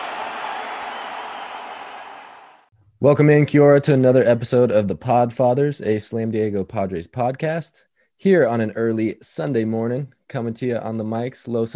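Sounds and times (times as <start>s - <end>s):
Padres fans in a San Diego stadium roaring and applauding Joe Musgrove's no-hitter: 0.0s - 2.7s
speech: 3.0s - 11.7s.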